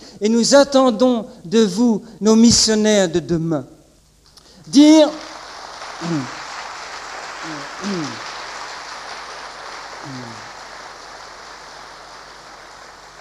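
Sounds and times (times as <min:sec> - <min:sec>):
speech: 0:00.2 - 0:03.7, 0:04.7 - 0:05.3, 0:06.0 - 0:06.4, 0:07.4 - 0:08.3
audience applauding: 0:05.0 - 0:13.1.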